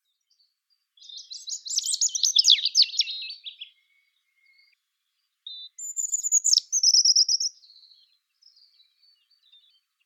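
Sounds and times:
European robin Erithacus rubecula song: 0.0s - 10.0s.

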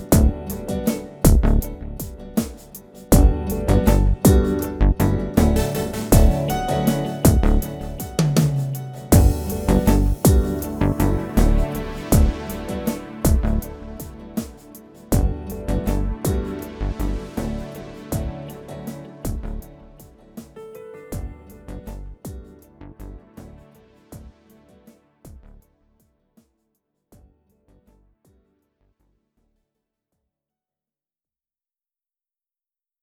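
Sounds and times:
instrumental ambient background music: 0.0s - 25.6s.

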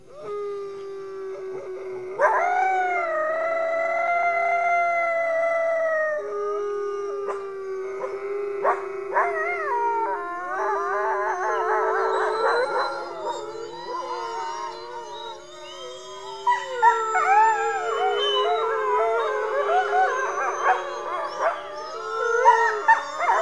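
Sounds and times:
coyotes yipping and howling: 0.0s - 23.4s.

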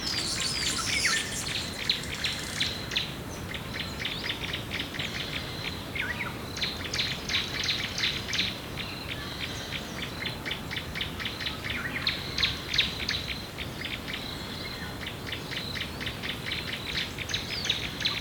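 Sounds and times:
rainforest woodland birds: 0.0s - 3.1s
wind in rainforest woodlands: 0.0s - 18.1s.

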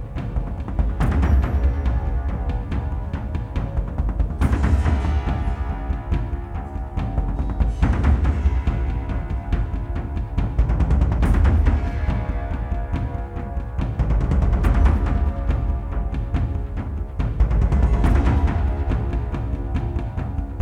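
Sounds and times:
thunder drums: 0.0s - 20.6s.

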